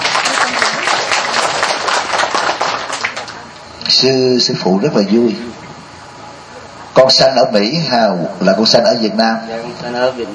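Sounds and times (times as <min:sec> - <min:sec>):
audience applause: 0:00.0 - 0:03.5
speech: 0:04.0 - 0:05.6, 0:07.0 - 0:10.3.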